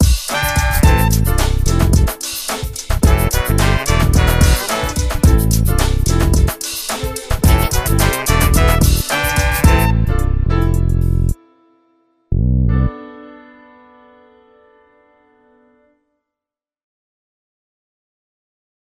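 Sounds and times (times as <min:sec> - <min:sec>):
hip hop music with horns: 0:00.0 - 0:11.4.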